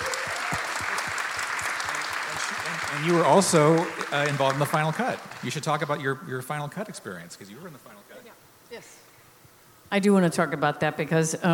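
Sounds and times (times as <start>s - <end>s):
audience applause: 0.0s - 6.8s
speech: 2.9s - 8.1s, 8.7s - 9.1s, 9.9s - 11.5s.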